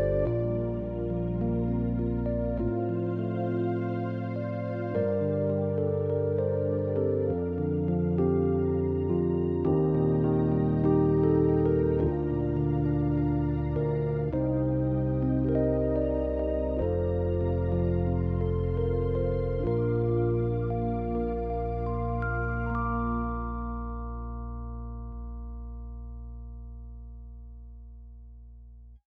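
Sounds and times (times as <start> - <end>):
Rhodes synth: 0.0 - 27.6.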